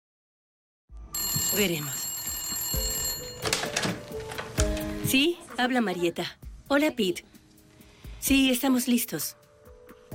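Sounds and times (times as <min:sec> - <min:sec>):
telephone ringing on a call placed from a farm estate: 0:01.2 - 0:04.4
speech: 0:01.5 - 0:02.0, 0:05.1 - 0:07.4, 0:08.2 - 0:09.4.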